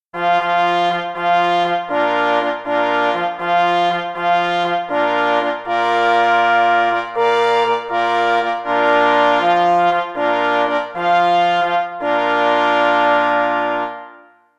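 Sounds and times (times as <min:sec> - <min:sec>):
hunting horn call for two pless and two parforce horns: 0:00.2 - 0:14.4.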